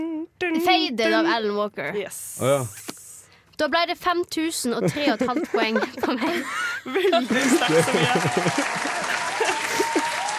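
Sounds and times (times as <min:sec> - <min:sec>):
speech: 0:00.6 - 0:02.8, 0:03.6 - 0:09.0
laughter: 0:04.8 - 0:10.3
audience applause: 0:07.2 - 0:10.3.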